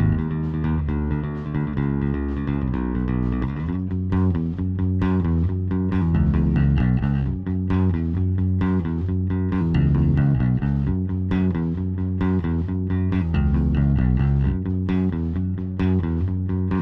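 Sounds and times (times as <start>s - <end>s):
bass sound: 0.0s - 16.8s.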